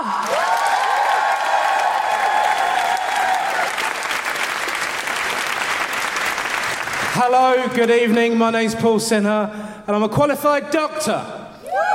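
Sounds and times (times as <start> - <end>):
audience applause: 0.0 - 8.1
speech: 7.2 - 11.4.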